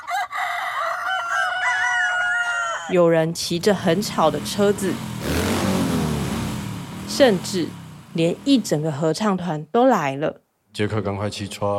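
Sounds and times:
roosters crowing: 0.0 - 3.1
speech: 2.9 - 5.5, 7.1 - 11.7.

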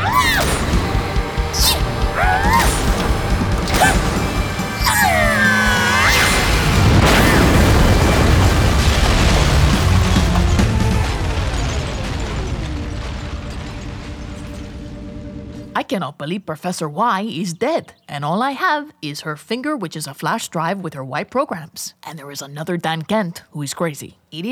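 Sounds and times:
death lasers firing in a sci-fi battle: 0.0 - 12.8
loud rumbling explosions and crashes: 0.0 - 15.7
speech: 16.0 - 24.5.

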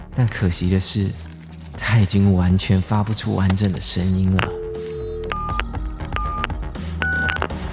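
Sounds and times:
speech: 0.2 - 4.9
telephone keypad dialing: 4.4 - 7.6.

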